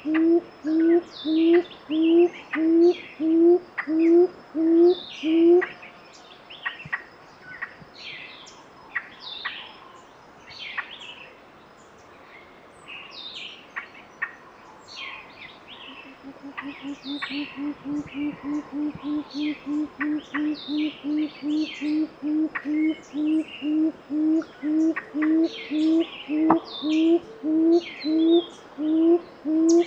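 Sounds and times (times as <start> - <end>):
gray-fronted quail-dove song of low hollow hooting notes in Soplillar Cuba: 0.0 - 5.7, 15.9 - 29.8.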